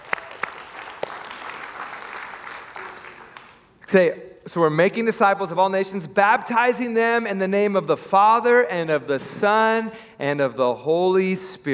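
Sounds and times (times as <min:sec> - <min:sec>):
audience applauding: 0:00.0 - 0:03.7
speech: 0:03.9 - 0:11.7.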